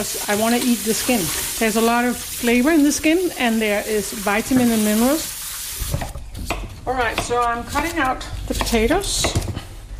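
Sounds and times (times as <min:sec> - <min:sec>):
speech: 0:00.0 - 0:05.4, 0:06.9 - 0:09.4
knife chopping washed potatoes with skins on: 0:06.0 - 0:09.6.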